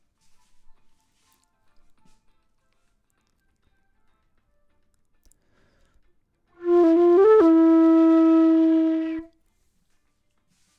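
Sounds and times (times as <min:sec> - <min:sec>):
flute: 0:06.6 - 0:09.3.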